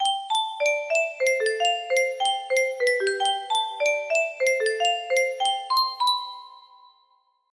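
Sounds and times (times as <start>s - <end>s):
music box melody: 0.0s - 7.0s.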